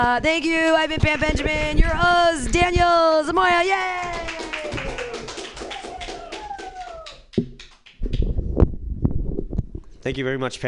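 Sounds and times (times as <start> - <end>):
speech: 0.0 - 4.2, 10.0 - 10.6
audience clapping: 1.0 - 8.4.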